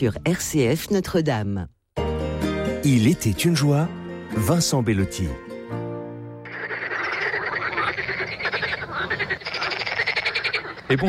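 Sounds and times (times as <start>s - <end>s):
speech: 0.0s - 1.8s, 2.8s - 5.4s
frogs croaking: 6.4s - 11.0s.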